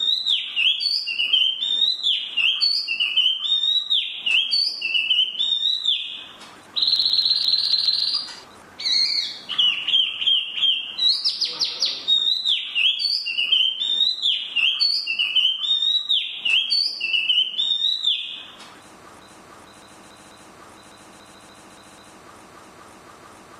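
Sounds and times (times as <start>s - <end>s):
Chinese hwamei singing bright falling whistles: 0.0s - 6.2s, 6.8s - 11.4s, 12.0s - 18.4s.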